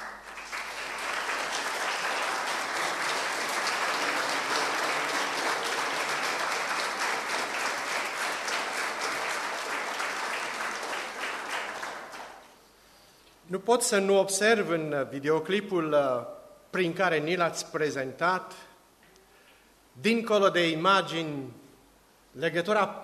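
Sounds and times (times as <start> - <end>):
church audience applauding: 0.0 - 12.6
speech: 13.6 - 18.7, 20.0 - 21.6, 22.4 - 23.0.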